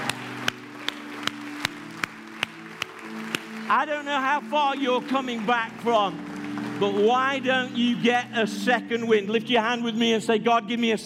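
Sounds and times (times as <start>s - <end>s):
audience clapping in rhythm: 0.0s - 8.6s
speech: 3.7s - 11.0s.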